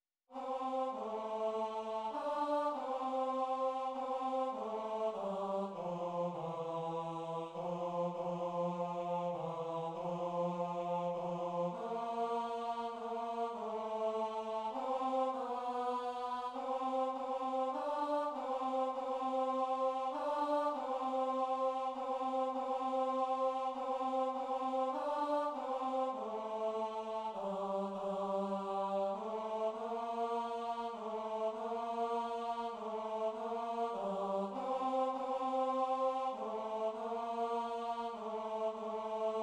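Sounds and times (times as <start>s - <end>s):
tenor voices singing Christmas choral pieces: 0.3s - 39.4s.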